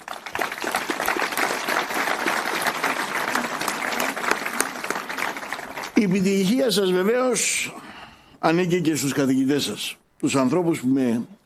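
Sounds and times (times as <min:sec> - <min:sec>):
audience applause: 0:00.0 - 0:06.5
speech: 0:06.0 - 0:11.4.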